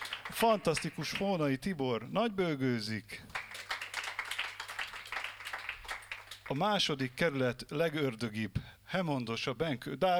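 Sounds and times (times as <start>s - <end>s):
faint jazz concert audience applause: 0.0s - 1.4s, 3.3s - 6.6s
speech: 0.4s - 3.4s, 6.5s - 10.1s.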